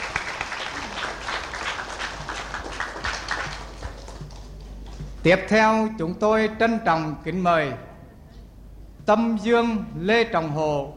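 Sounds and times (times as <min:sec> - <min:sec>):
audience applause for a prize winner at an awards presentation: 0:00.0 - 0:05.2
speech: 0:05.2 - 0:07.9, 0:09.1 - 0:10.9.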